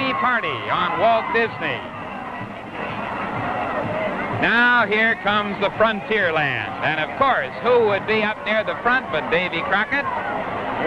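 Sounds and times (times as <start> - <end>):
crowd of children at a party: 0.0 - 10.8
speech: 0.4 - 2.5, 4.4 - 10.8.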